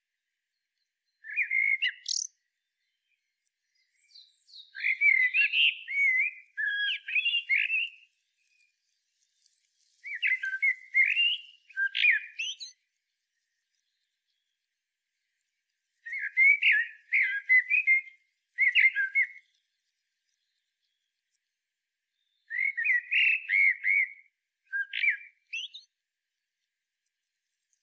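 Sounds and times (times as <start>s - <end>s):
Common blackbird fluted song: 1.1s - 12.9s, 16.0s - 21.3s, 22.1s - 26.0s.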